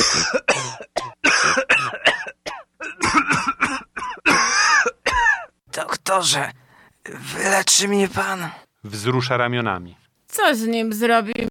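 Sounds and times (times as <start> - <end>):
person coughing on command: 0.0 - 5.6
speech: 6.1 - 11.5.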